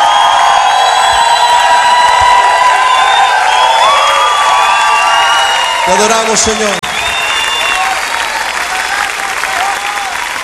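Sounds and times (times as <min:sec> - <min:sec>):
audience applauding: 0:00.0 - 0:10.4
speech: 0:05.9 - 0:06.9.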